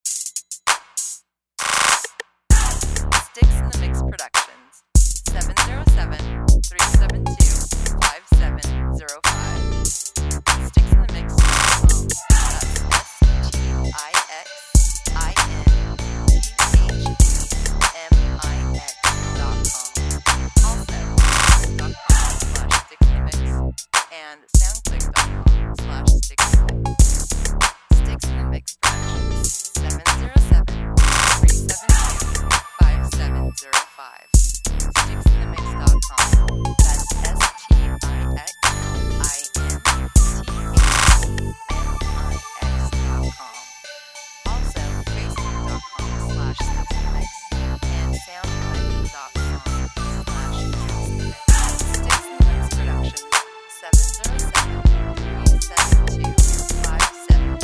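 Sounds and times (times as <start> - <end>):
funk music: 0.1 - 57.6.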